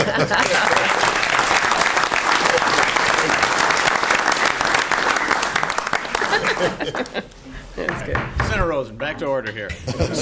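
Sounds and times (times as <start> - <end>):
laughter: 0.0 - 1.2, 6.1 - 7.6, 9.5 - 10.1
audience applause in a state senate committee hearing: 0.0 - 7.3
speech: 0.1 - 0.7, 6.6 - 10.1.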